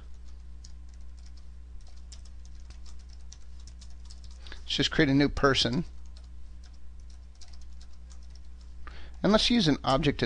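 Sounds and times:
computer keyboard typing code: 0:00.0 - 0:04.6, 0:05.7 - 0:09.3
constant low hum: 0:00.0 - 0:10.2
speech: 0:04.7 - 0:06.0, 0:09.3 - 0:10.2.

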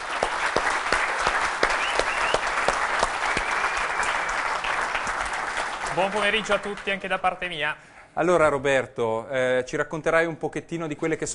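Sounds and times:
audience applause: 0:00.0 - 0:07.5
speech: 0:06.0 - 0:11.3.

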